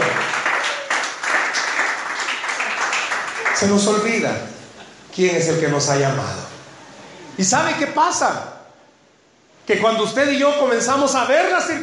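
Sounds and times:
audience applause: 0:00.0 - 0:04.3
speech: 0:03.6 - 0:04.6, 0:05.2 - 0:06.5, 0:07.4 - 0:08.5, 0:09.7 - 0:11.8.

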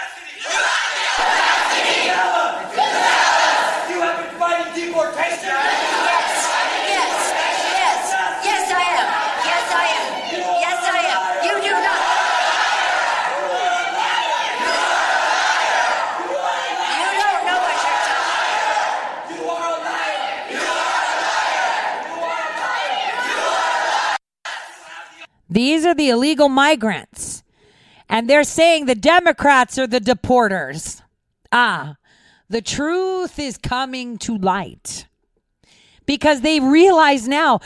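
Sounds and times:
crowd heckling Nancy Pelosi: 0:00.0 - 0:25.2
speech: 0:25.6 - 0:27.1, 0:28.2 - 0:35.1, 0:36.1 - 0:37.6.

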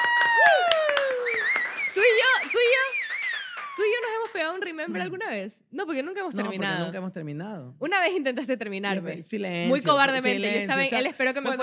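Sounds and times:
hand claps: 0:00.0 - 0:04.6
tonal whistling: 0:01.2 - 0:04.0
speech: 0:04.5 - 0:11.6.

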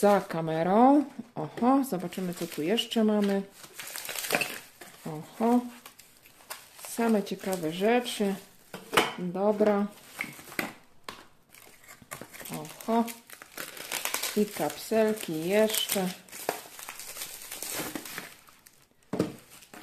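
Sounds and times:
speech: 0:00.0 - 0:04.5, 0:05.1 - 0:05.8, 0:07.0 - 0:08.5, 0:09.2 - 0:10.4, 0:12.9 - 0:13.2, 0:14.4 - 0:16.2
paper envelope being unpacked, crinkling: 0:02.0 - 0:08.7, 0:11.5 - 0:19.8.

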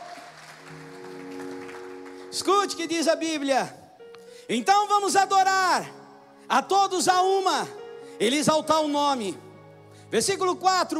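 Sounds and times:
audience applauding: 0:00.0 - 0:03.5
speech: 0:02.3 - 0:03.8, 0:04.5 - 0:09.4, 0:10.1 - 0:10.9.

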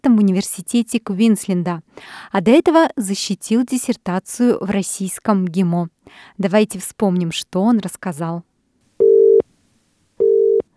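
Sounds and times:
speech: 0:00.0 - 0:08.5
telephone ringing tone during outgoing call: 0:09.0 - 0:09.4, 0:10.2 - 0:10.6.

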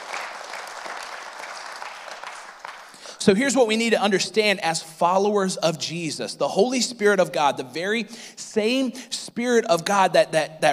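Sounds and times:
audience applause: 0:00.0 - 0:03.0
speech: 0:03.2 - 0:10.7.

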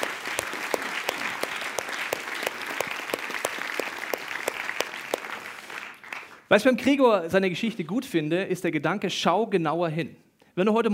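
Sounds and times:
audience applause: 0:00.0 - 0:06.4
speech: 0:06.5 - 0:10.9.

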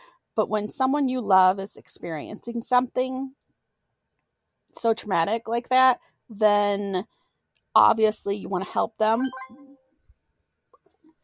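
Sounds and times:
speech: 0:00.4 - 0:03.4, 0:04.7 - 0:09.6
phone notification chime: 0:09.2 - 0:09.9.

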